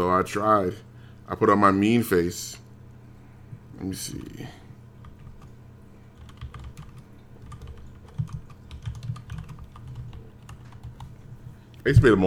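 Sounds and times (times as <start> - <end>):
speech: 0.0 - 2.6, 3.8 - 4.6, 11.9 - 12.2
typing on a computer keyboard: 5.0 - 5.6, 6.2 - 11.2.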